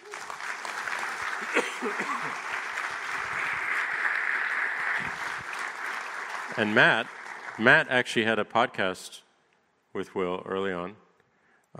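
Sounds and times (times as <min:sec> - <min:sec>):
audience applause: 0:00.0 - 0:07.9
speech: 0:01.5 - 0:02.6, 0:06.6 - 0:09.2, 0:10.0 - 0:11.0.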